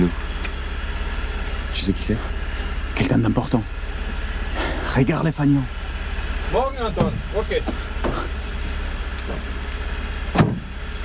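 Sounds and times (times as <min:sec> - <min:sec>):
car engine idling: 0:00.0 - 0:11.0
speech: 0:01.8 - 0:02.4, 0:03.0 - 0:03.8, 0:05.0 - 0:05.8, 0:06.5 - 0:08.4
car door thump as a man gets into the car: 0:06.9 - 0:08.4, 0:10.3 - 0:10.8.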